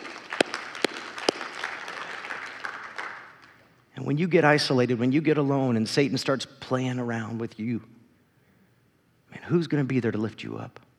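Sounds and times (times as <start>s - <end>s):
audience applause: 0.0s - 3.5s
speech: 4.0s - 8.0s, 9.5s - 10.8s.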